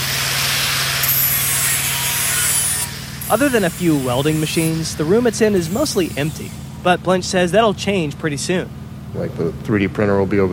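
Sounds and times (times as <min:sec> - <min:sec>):
grinder prepping steel plates for welding: 0:00.0 - 0:06.9
speech: 0:03.3 - 0:10.5.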